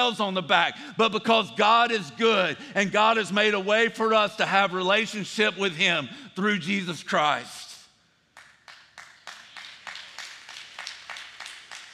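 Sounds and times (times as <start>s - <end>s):
speech: 0.0s - 7.6s
someone clapping in the audience: 8.3s - 11.9s.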